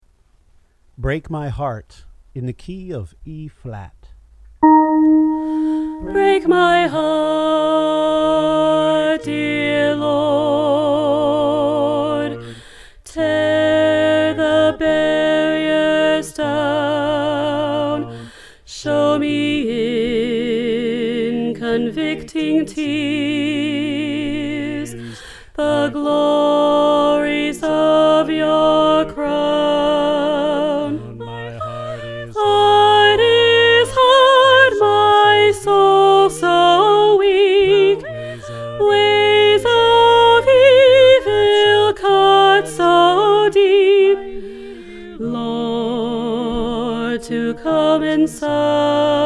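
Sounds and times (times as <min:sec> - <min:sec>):
alto choir part singing: 0:04.6 - 0:49.2.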